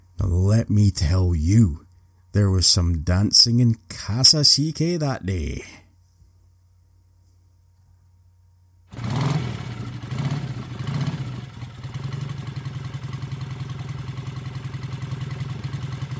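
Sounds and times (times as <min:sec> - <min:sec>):
speech: 0:00.3 - 0:05.8
motorcycle engine revving during a ride: 0:08.9 - 0:16.1.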